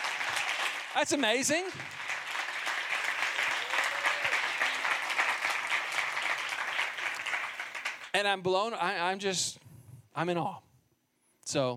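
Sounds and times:
audience applause: 0.0s - 8.2s
speech: 1.0s - 2.0s, 8.2s - 10.7s, 11.5s - 11.7s.

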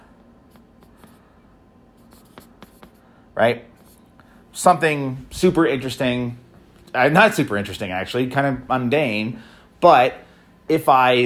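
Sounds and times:
pen strokes handwriting a short note: 2.0s - 3.0s
speech: 3.4s - 3.7s, 4.6s - 11.2s.

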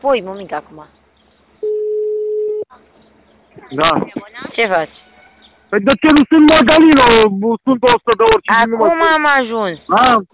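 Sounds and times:
speech: 0.0s - 1.0s, 3.6s - 5.0s, 5.7s - 10.3s
phone line ringing tone of a recorded call: 1.6s - 2.7s.

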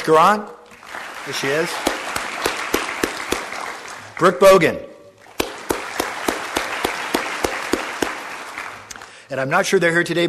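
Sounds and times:
speech: 0.0s - 0.6s, 1.2s - 1.9s, 4.2s - 4.9s, 9.3s - 10.2s
audience applause at a recognition event: 0.7s - 4.5s, 5.2s - 9.2s.

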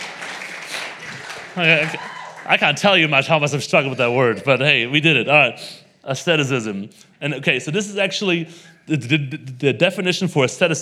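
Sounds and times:
audience clapping: 0.0s - 4.5s
speech: 1.6s - 10.7s.

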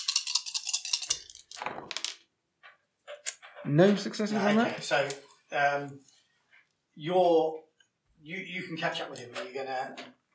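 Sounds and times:
dice rattling and rolling: 0.0s - 2.3s
speech: 3.6s - 6.1s, 7.0s - 10.2s.

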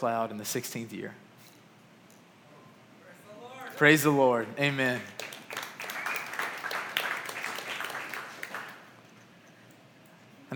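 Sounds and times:
speech: 0.0s - 1.3s, 3.8s - 5.2s
scattered audience clapping: 4.4s - 9.0s.

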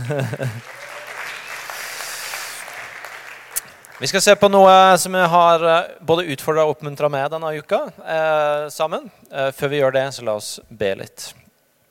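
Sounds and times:
laughter: 0.0s - 1.0s
audience applause: 0.0s - 4.2s
speech: 0.1s - 0.9s, 4.0s - 11.4s.

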